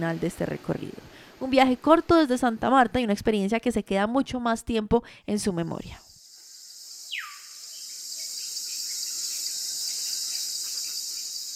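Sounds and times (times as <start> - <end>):
speech: 0.0 - 6.0
insects chirping in the jungle: 6.0 - 11.5.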